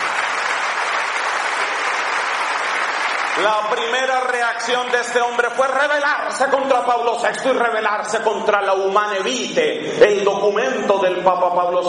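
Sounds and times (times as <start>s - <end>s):
audience applause: 0.0s - 5.1s
speech: 3.4s - 11.8s.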